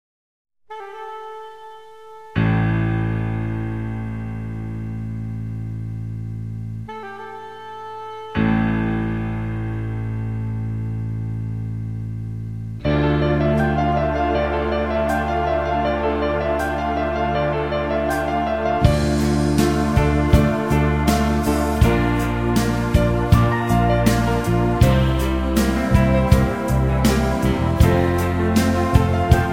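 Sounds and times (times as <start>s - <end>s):
brass music: 0.7s - 11.7s, 12.7s - 29.5s.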